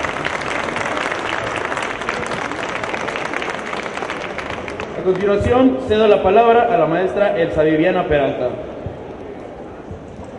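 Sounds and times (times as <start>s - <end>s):
audience applause: 0.0s - 5.4s
speech: 5.0s - 8.7s.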